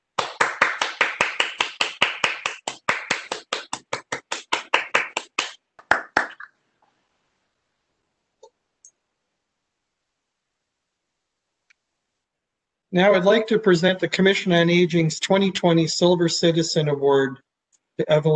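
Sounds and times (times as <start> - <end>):
commission members applauding: 0.1 - 6.5
speech: 12.9 - 17.4, 18.0 - 18.3.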